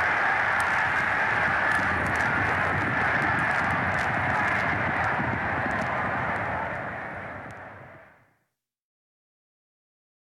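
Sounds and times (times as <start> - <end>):
horse race start: 0.0 - 8.0.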